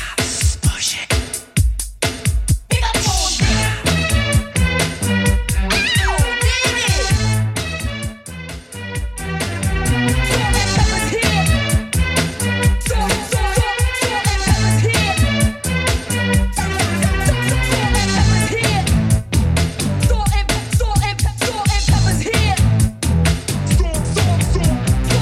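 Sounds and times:
eighties drum machine beat at 130 bpm: 0.0 - 25.2
laughter: 16.6 - 18.3.

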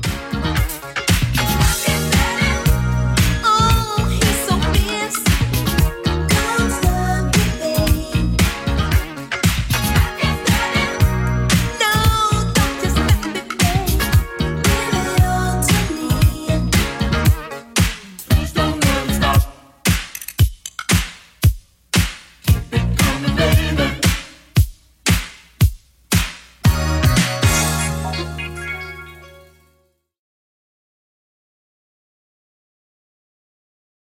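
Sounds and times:
clean 80s drum beat at 115 bpm: 1.1 - 27.8.

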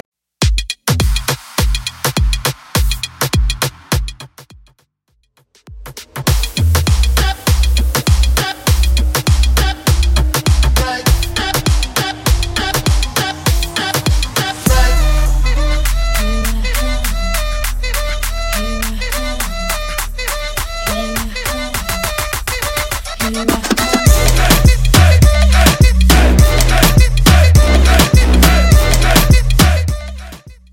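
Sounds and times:
dancehall remix at 102 BPM: 0.4 - 4.7, 5.6 - 30.7.

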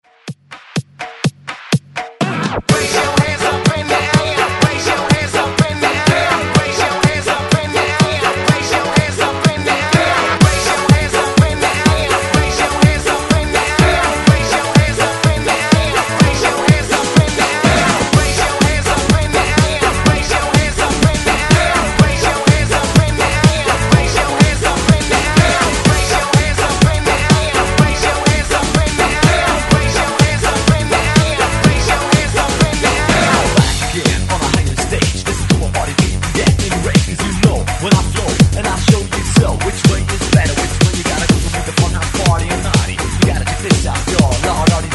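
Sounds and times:
1990s hype dance music: 0.0 - 44.9.

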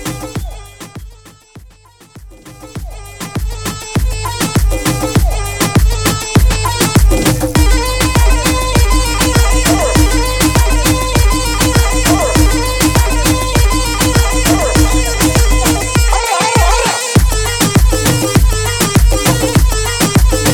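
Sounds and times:
moombahton music at 100 BPM: 0.0 - 20.5.

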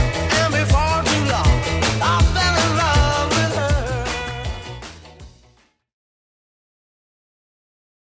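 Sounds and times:
sixties Redrum drum beat: 0.0 - 5.5.

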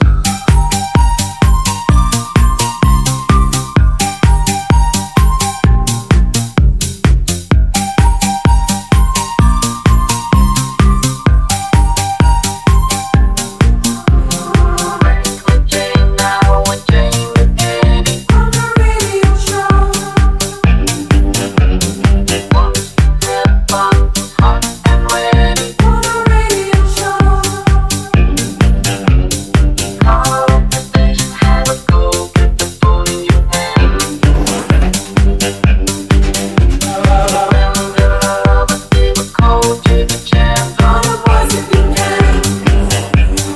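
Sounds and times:
eighties drum beat: 0.0 - 43.5.

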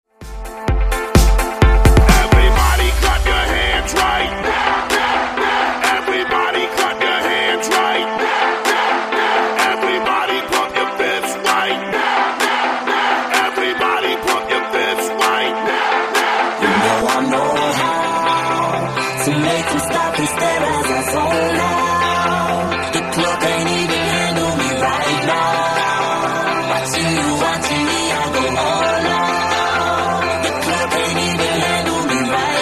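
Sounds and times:
club music: 0.1 - 32.6.

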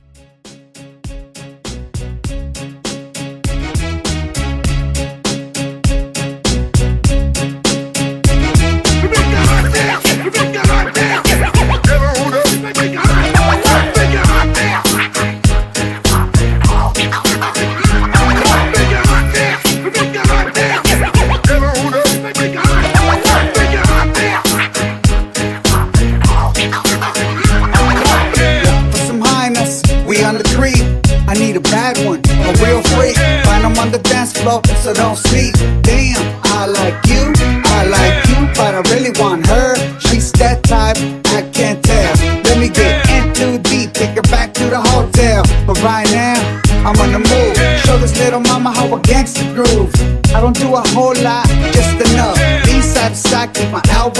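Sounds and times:
music mashup: 0.0 - 54.1
laughter: 8.9 - 28.9, 36.4 - 40.2, 42.0 - 43.4, 46.0 - 48.1, 51.7 - 53.1.

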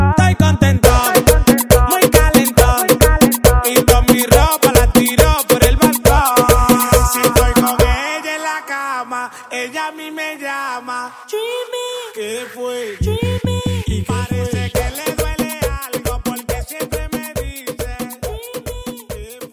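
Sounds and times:
drum: 0.2 - 8.0, 13.0 - 19.5.

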